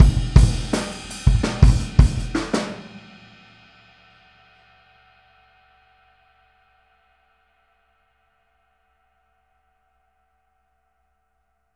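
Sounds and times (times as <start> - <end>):
boogaloo outro drum beat with kick: 0.0 - 3.2.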